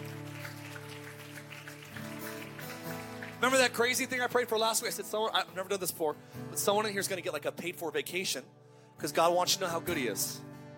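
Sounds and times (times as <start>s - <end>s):
church audience clapping: 0.0s - 5.1s
speech: 3.4s - 10.5s.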